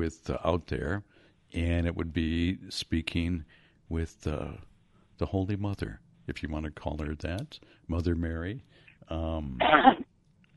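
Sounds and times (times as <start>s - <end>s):
speech: 0.0s - 10.0s
sneeze: 9.6s - 10.0s.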